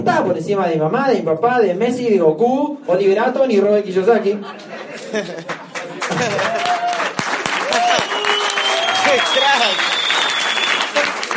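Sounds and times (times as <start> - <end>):
speech: 0.0 - 6.8, 9.1 - 9.9
laughter: 4.1 - 6.9, 7.6 - 8.3
audience applause: 5.3 - 11.3
scattered whoops: 6.2 - 11.0
long high whistle: 7.9 - 11.0.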